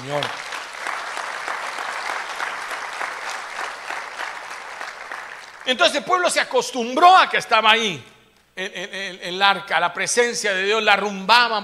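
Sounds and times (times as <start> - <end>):
speech: 0.0 - 0.5, 5.6 - 11.6
audience applause: 0.0 - 6.0.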